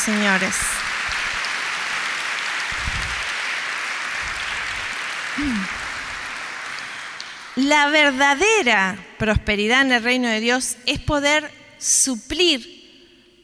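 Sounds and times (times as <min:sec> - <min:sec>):
speech: 0:00.0 - 0:00.9, 0:05.4 - 0:05.8, 0:07.6 - 0:12.8
crowd applauding: 0:00.0 - 0:08.7
vocal cry: 0:05.4 - 0:05.8.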